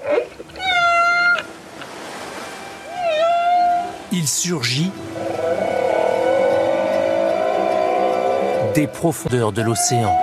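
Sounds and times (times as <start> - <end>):
whale song: 0.0 - 1.5, 2.8 - 4.1, 4.9 - 10.2
speech: 4.1 - 5.3, 8.8 - 10.2.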